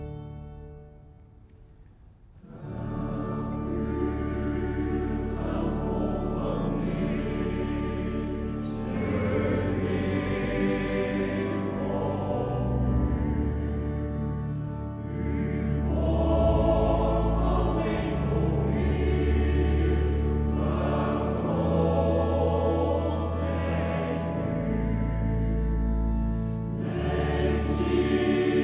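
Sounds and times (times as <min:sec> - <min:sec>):
choir singing: 0:02.4 - 0:28.6.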